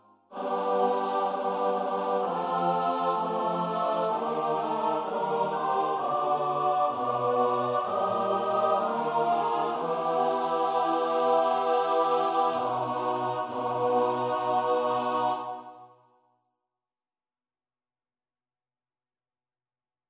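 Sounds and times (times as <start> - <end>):
SATB choir part practice: 0.2 - 15.9.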